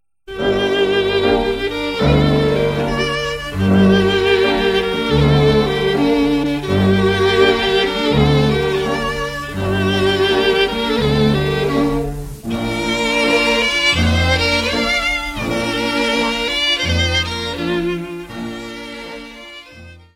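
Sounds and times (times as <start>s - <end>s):
Romanian folk dance music: 0.3s - 20.1s.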